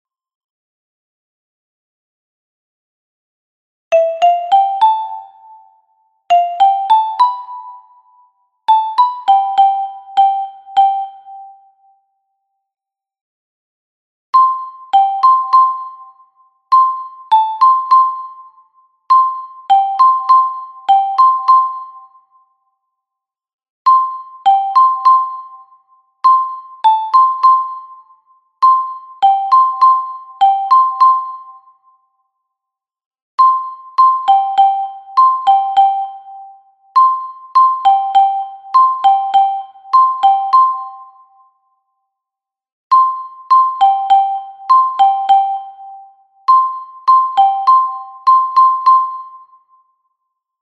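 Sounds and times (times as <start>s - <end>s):
soprano xylophone: 3.9s - 8.1s, 8.7s - 11.7s, 14.4s - 22.2s, 23.9s - 31.8s, 33.4s - 41.3s, 42.9s - 49.7s.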